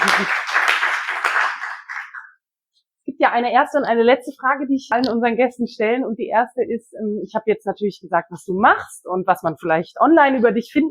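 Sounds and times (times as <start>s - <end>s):
small audience clapping: 0.0s - 2.4s
speech: 3.2s - 10.8s.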